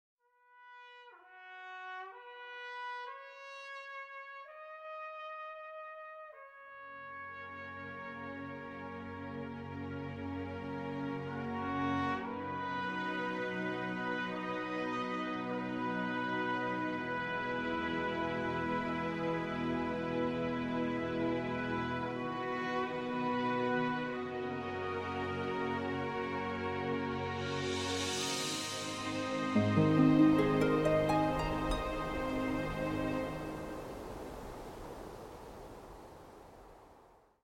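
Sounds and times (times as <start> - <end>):
instrumental music: 7.1 - 34.0.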